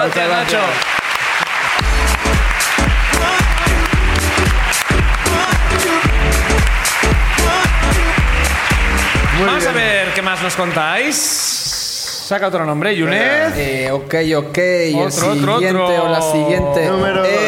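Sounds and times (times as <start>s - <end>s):
speech: 0.0s - 1.0s, 1.8s - 2.4s, 9.4s - 11.7s, 12.3s - 17.4s
audience applause: 0.0s - 12.4s
low rhythmic thumping: 1.8s - 9.9s.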